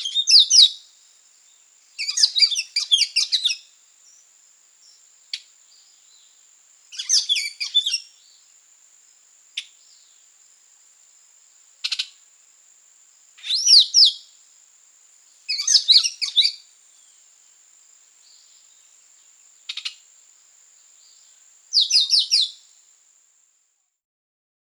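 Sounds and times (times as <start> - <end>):
Lesser Antillean Grackle calling in Guadeloupe: 2.0 - 3.6, 6.9 - 8.1, 11.8 - 12.2, 13.4 - 14.3, 15.5 - 16.6, 19.7 - 20.1, 21.7 - 22.6.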